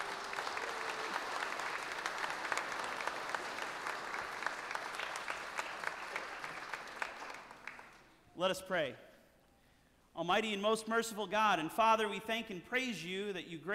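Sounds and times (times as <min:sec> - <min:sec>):
applause: 0:00.0 - 0:08.2
speech: 0:08.4 - 0:09.1, 0:10.2 - 0:13.7.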